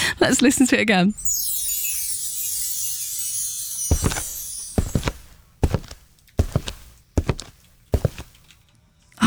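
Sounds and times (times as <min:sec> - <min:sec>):
speech: 0:00.2 - 0:01.5
heavy stomping footsteps: 0:03.9 - 0:08.6.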